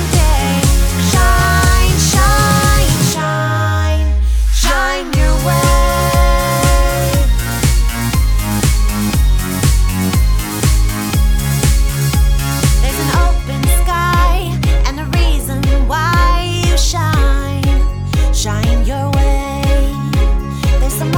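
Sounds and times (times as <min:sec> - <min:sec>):
backing track music: 0:00.0 - 0:21.1.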